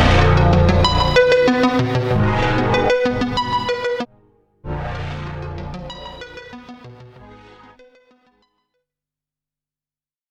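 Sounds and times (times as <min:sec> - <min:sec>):
instrumental music: 0:00.0 - 0:08.2.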